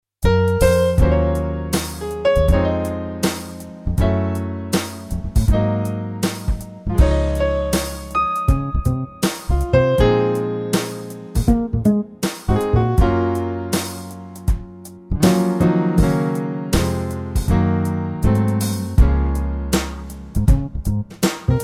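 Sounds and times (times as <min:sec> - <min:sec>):
groove music: 0:00.2 - 0:21.6.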